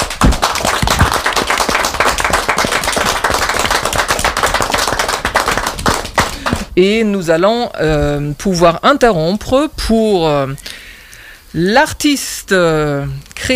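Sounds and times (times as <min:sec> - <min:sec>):
spontaneous applause: 0:00.0 - 0:06.7
speech: 0:06.8 - 0:10.7, 0:11.5 - 0:13.5.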